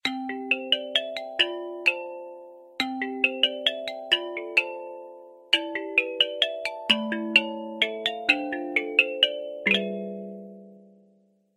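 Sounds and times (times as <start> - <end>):
Samsung Galaxy S9 lullaby ringtone: 0.0 - 11.1.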